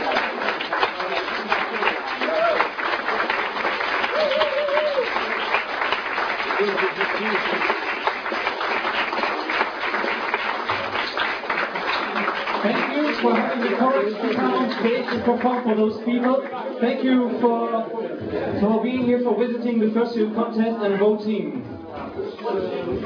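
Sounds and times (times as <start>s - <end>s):
audience applause: 0.0s - 15.8s
whoops and cheers: 2.2s - 2.8s, 4.0s - 5.2s
speech: 13.2s - 21.6s.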